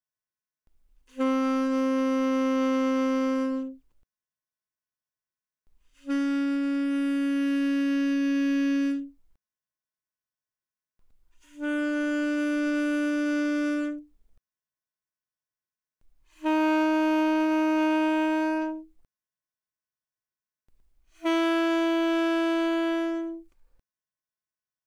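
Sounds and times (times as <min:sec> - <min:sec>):
alto saxophone notes without vibrato from C4 to B4: 0:01.1 - 0:03.8, 0:06.0 - 0:09.2, 0:11.5 - 0:14.1, 0:16.4 - 0:18.9, 0:21.2 - 0:23.5.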